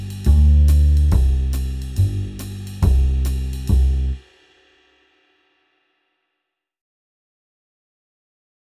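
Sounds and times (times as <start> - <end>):
jazz backing music: 0.0 - 4.2.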